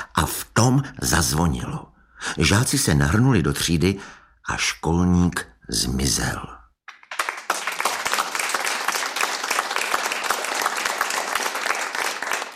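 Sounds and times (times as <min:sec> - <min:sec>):
speech: 0:00.2 - 0:06.6
applause from a group of people: 0:06.9 - 0:12.5.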